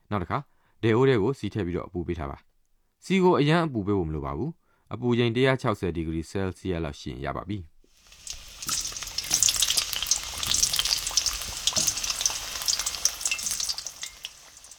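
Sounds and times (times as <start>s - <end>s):
speech: 0.1s - 7.7s
food frying in hot oil: 7.9s - 14.7s.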